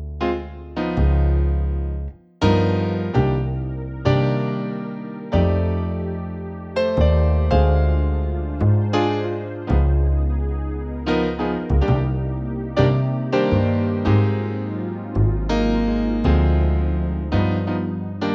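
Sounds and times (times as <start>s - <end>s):
jazz ballad backing music: 0.2s - 18.3s.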